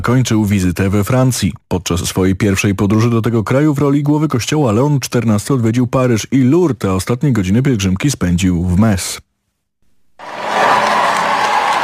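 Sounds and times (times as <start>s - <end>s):
speech: 0.0s - 9.3s
crowds of faithful in the streets of Metz applauding Pope Leo XIV: 10.2s - 11.8s.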